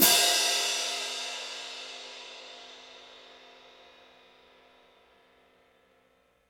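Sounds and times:
orchestral cymbal crash: 0:00.0 - 0:04.8.

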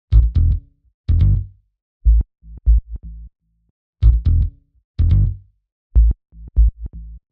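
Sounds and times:
123 BPM sparse bass loop in A minor: 0:00.1 - 0:03.3, 0:04.0 - 0:05.4, 0:06.0 - 0:07.2.

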